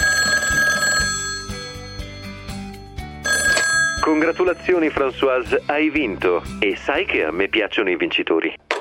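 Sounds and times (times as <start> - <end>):
telephone bell ringing with a bright metallic trill: 0.0 - 4.9
speech: 4.1 - 8.7.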